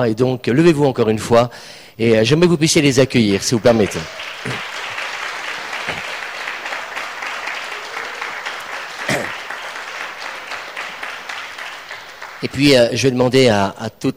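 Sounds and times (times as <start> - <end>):
speech: 0.0 - 4.7, 12.4 - 14.1
audience applause: 3.2 - 13.4.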